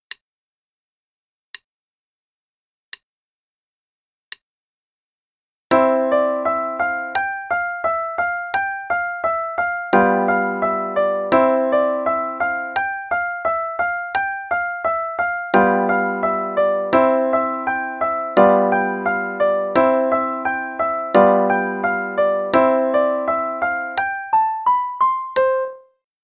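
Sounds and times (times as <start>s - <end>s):
play-along backing track: 5.7s - 25.8s.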